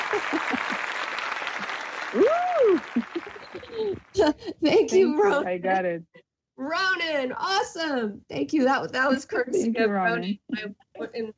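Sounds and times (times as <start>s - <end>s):
applause: 0.0s - 4.2s
laughter: 0.0s - 5.5s
speech: 0.1s - 0.8s, 3.8s - 11.3s.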